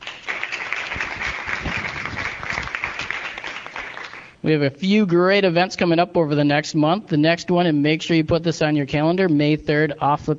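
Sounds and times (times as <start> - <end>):
audience applause: 0.0 - 4.4
speech: 4.4 - 10.3.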